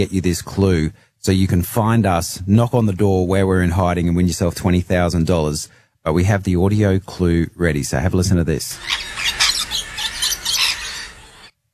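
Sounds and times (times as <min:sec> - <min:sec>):
speech: 0:00.0 - 0:09.4
rainbow lorikeet call: 0:08.7 - 0:11.5.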